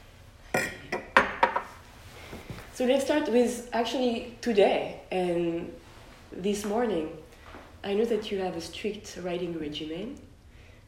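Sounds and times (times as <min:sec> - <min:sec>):
champagne glasses clinking in a toast: 0:00.5 - 0:01.7
speech: 0:02.8 - 0:07.2, 0:07.8 - 0:10.3.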